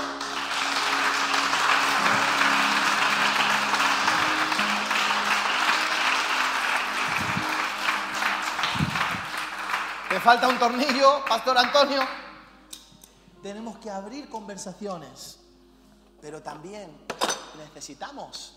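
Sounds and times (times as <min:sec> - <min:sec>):
audience applause: 0:00.0 - 0:12.2
speech: 0:10.2 - 0:12.2, 0:13.4 - 0:15.4, 0:16.2 - 0:17.0, 0:17.6 - 0:18.5.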